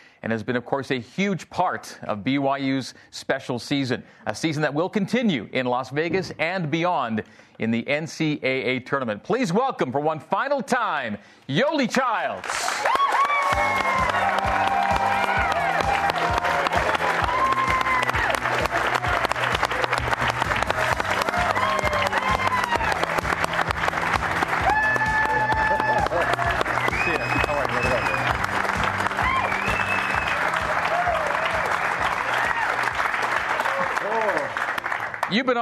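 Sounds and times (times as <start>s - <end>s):
speech: 0.2s - 14.4s, 35.4s - 35.6s
live show crowd applause and cheering for a BYU basketball player: 12.1s - 35.6s.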